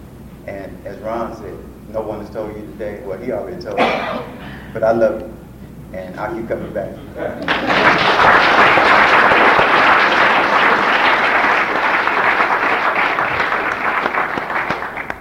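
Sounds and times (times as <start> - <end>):
speech: 0.5 - 8.9
audience applause: 7.4 - 15.1.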